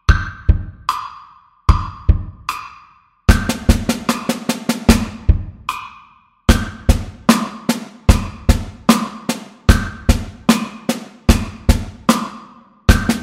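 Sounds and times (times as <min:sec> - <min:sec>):
snare drum: 0:03.3 - 0:05.9, 0:06.5 - 0:13.2.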